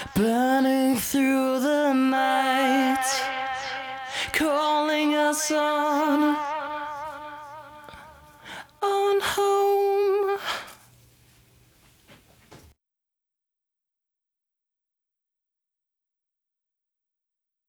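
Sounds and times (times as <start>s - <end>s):
voice with delay effect: 0.0s - 10.3s.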